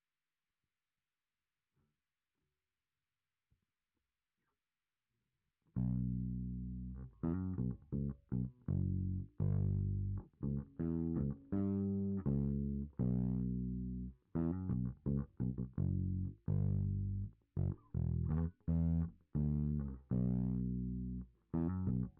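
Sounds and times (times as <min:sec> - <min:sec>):
bass guitar through SansAmp: 0:05.8 - 0:22.1.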